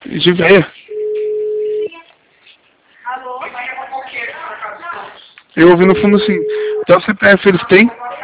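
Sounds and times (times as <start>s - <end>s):
speech: 0.2s - 0.8s, 5.6s - 8.0s
steady telephone tone as a call drops: 0.9s - 1.9s, 5.9s - 6.9s.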